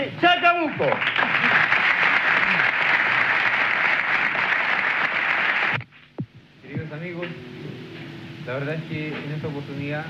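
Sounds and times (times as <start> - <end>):
speech: 0.0 - 1.6, 8.5 - 10.0
audience applause: 0.7 - 5.8.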